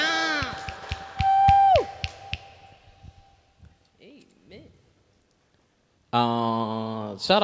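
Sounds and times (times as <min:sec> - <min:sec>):
live audience clapping: 0:00.2 - 0:02.7
high-pitched whooping cheer sliding downward: 0:01.1 - 0:02.4
speech: 0:06.2 - 0:06.4, 0:07.2 - 0:07.4.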